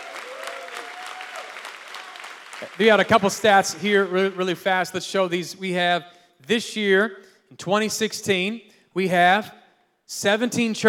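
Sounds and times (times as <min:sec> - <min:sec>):
audience clapping hands: 0:00.0 - 0:04.9
speech: 0:02.6 - 0:10.8.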